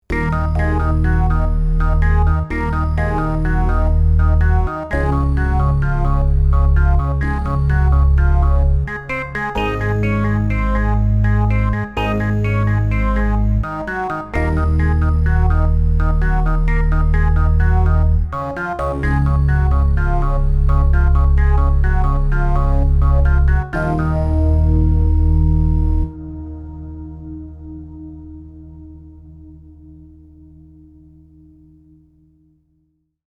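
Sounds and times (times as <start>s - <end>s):
PPG Wave Computer 360 percussive synth: 0.1s - 26.5s.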